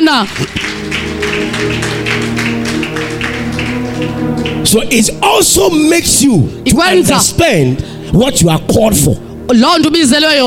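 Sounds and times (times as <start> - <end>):
audience clapping: 0.0 - 5.4
speech: 0.1 - 2.1, 4.1 - 10.4
sustained droning musical chord: 0.3 - 10.4.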